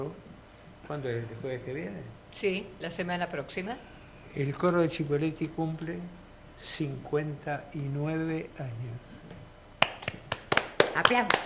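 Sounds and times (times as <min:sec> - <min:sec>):
speech: 0:00.0 - 0:00.2, 0:00.9 - 0:09.3, 0:11.0 - 0:11.4
scattered hand claps during a choir's anniversary celebration: 0:09.8 - 0:11.4.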